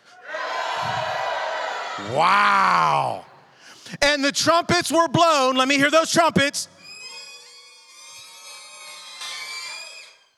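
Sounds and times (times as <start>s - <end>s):
audience shouting together: 0.2s - 3.2s
speech: 2.0s - 3.3s, 3.9s - 6.8s.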